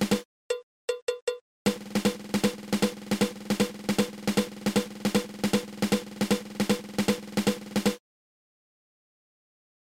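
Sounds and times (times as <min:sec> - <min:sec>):
six stroke drum roll: 0:00.0 - 0:00.2, 0:01.7 - 0:08.0.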